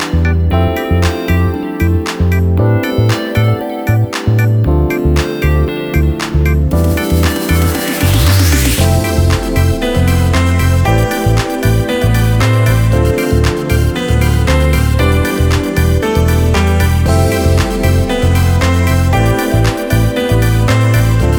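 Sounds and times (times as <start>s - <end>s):
drumless pop music: 0.0s - 21.3s.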